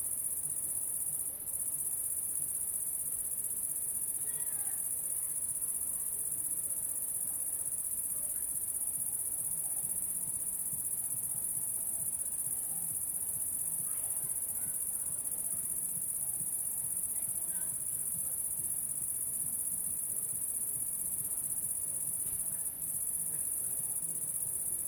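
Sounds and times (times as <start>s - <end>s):
crickets trilling: 0.0s - 24.8s.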